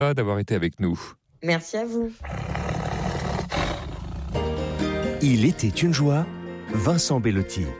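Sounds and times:
speech: 0.0 - 2.5, 5.2 - 7.7
tiger growling: 2.2 - 4.7.

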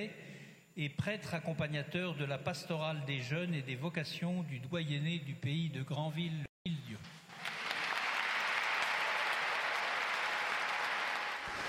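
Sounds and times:
speech: 0.0 - 0.2, 0.8 - 7.2
crowd applauding an announced clergy appointment: 7.2 - 11.6.

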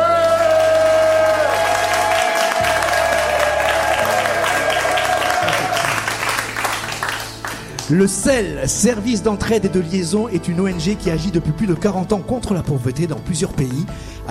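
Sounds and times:
audience clapping in the evangelical free church of Pessac, Gironde: 0.0 - 8.0
music: 0.0 - 14.2
speech: 7.9 - 14.2.

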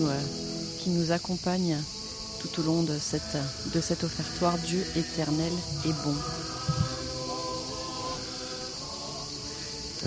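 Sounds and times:
speech: 0.0 - 7.0
cicadas droning: 0.0 - 10.0
faint sustained low tones: 4.4 - 7.1
soft bumps: 5.7 - 7.1.

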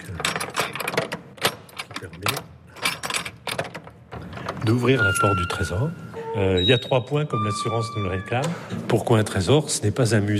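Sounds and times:
bunch of keys jangling: 0.0 - 4.0
speech: 4.7 - 10.3.

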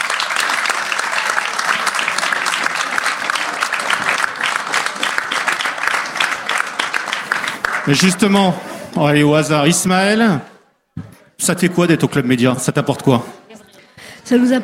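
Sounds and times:
audience applause: 0.0 - 8.6
speech: 7.9 - 10.5, 11.4 - 13.4, 14.3 - 14.6.

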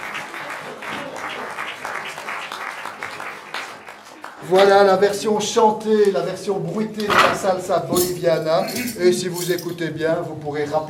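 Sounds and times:
audience applause: 0.0 - 4.7
speech: 4.4 - 10.8.

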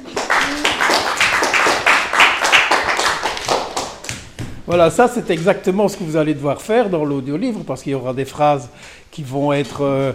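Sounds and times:
audience clapping for a performer: 0.0 - 4.7
speech: 4.7 - 10.1.

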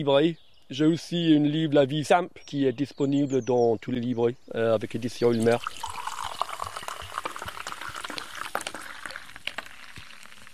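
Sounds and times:
speech: 0.0 - 5.9
drink foaming and fizzing as it is poured: 5.3 - 10.5.

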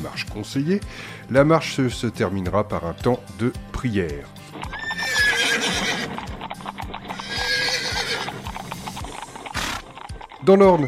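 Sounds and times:
speech: 0.0 - 4.7, 10.4 - 10.8
draft horse hooves clip-clopping: 4.5 - 10.8
draft horse neighing: 4.6 - 10.8.

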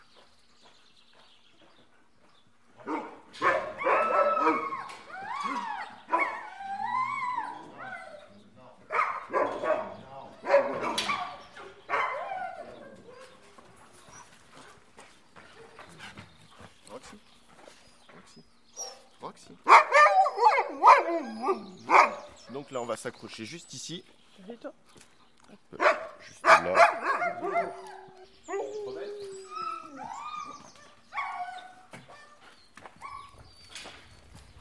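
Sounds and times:
dogs barking: 2.8 - 8.2, 8.8 - 13.4, 18.8 - 22.7, 25.7 - 32.4
dogs whining yips: 3.4 - 8.2, 18.8 - 19.1, 19.8 - 22.3, 26.6 - 34.6
speech: 23.0 - 24.8.

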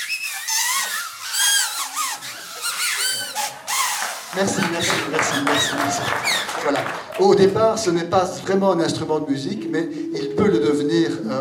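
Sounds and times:
paper whistles blown by the audience: 0.0 - 6.6
speech: 4.4 - 10.6.

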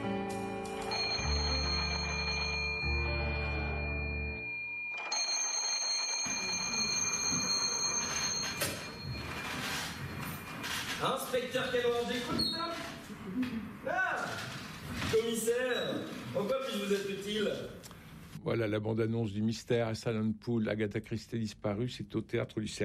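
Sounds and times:
old-fashioned telephone bell ringing: 0.8 - 12.2
speech: 11.0 - 17.8, 18.4 - 22.8.

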